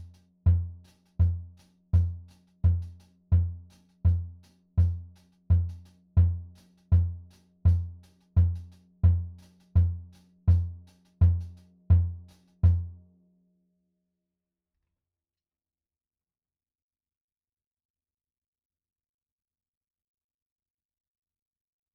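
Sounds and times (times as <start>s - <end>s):
kick drum: 0.0s - 12.9s.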